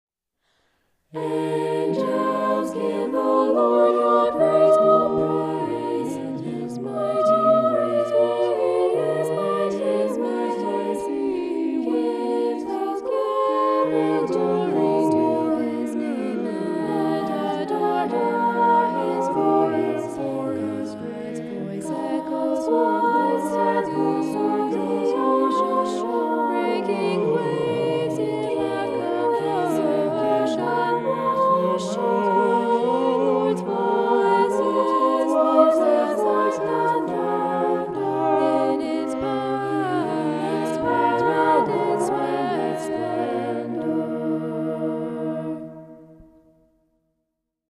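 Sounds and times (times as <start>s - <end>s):
polyphonic vocal sound: 1.1s - 46.3s.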